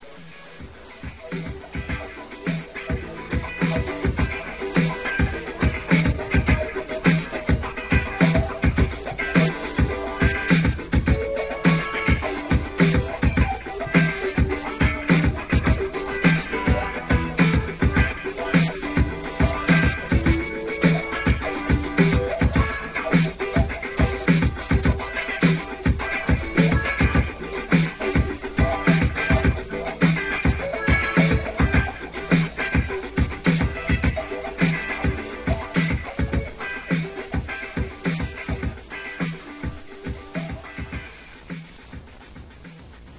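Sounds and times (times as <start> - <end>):
funk music: 0.0 - 43.1.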